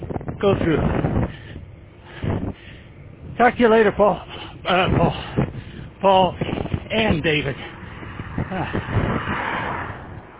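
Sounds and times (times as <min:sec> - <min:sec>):
speech: 0:00.4 - 0:01.1, 0:03.4 - 0:05.4, 0:06.0 - 0:07.7, 0:08.5 - 0:09.0
car passing by: 0:07.4 - 0:10.3.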